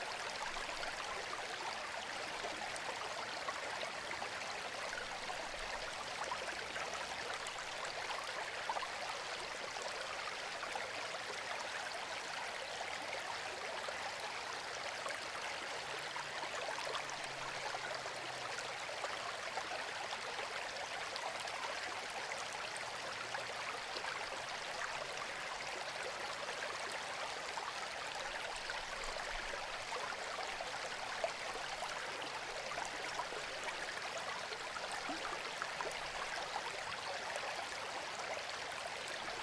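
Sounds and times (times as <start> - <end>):
stream flowing: 0.0 - 39.4.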